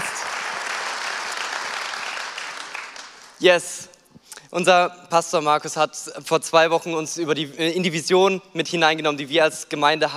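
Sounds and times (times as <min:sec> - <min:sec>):
audience applause: 0:00.0 - 0:03.4
speech: 0:03.4 - 0:03.9, 0:04.5 - 0:10.1.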